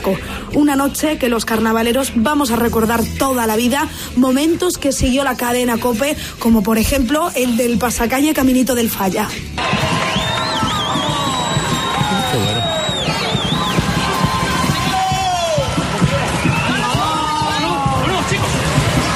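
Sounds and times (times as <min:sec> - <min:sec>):
speech: 0:00.0 - 0:09.9
theatre audience ovation: 0:09.6 - 0:19.1.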